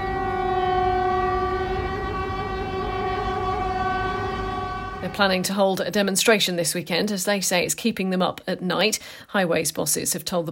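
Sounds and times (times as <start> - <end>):
low rumble: 0.0 - 5.6
queuing lorry horns honking in traffic: 0.0 - 5.8
speech: 5.1 - 10.4.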